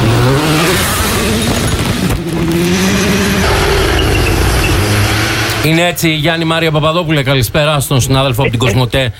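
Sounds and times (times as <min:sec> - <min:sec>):
car engine held flat out in sixth gear through a corner: 0:00.0 - 0:06.5
speech: 0:05.7 - 0:09.1.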